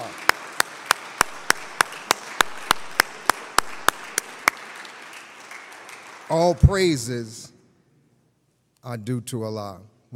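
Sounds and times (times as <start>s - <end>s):
audience applause: 0.0s - 6.7s
speech: 6.3s - 7.4s, 8.8s - 10.1s.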